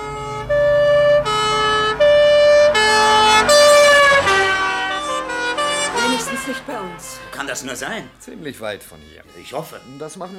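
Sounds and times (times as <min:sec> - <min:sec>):
two-tone fire engine siren: 0:00.0 - 0:08.0
fire engine rumbling: 0:00.0 - 0:10.3
speech: 0:07.4 - 0:10.3.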